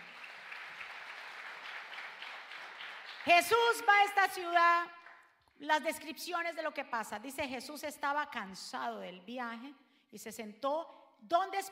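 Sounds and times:
large crowd applauding: 0.0 - 3.6
speech: 3.2 - 5.0, 5.6 - 11.6.

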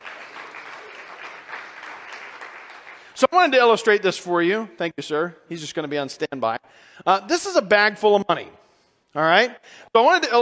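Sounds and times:
audience applause: 0.0 - 3.2
speech: 3.2 - 8.6, 9.2 - 10.3.

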